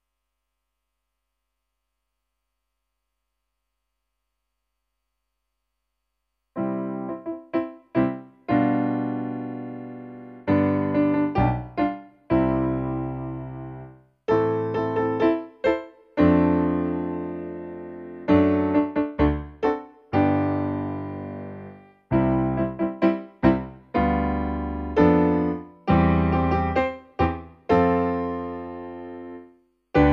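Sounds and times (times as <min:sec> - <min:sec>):
piano: 0:06.6 - 0:30.1.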